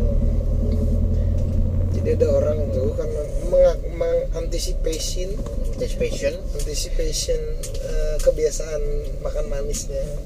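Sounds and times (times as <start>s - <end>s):
motorcycle engine rumbling: 0.0s - 10.2s
speech: 2.1s - 10.2s.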